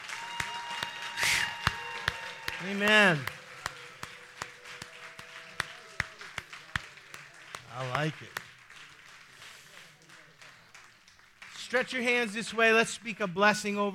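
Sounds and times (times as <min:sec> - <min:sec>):
audience clapping hands: 0:00.0 - 0:12.9
speech: 0:02.6 - 0:03.4, 0:07.8 - 0:08.5, 0:11.7 - 0:13.9.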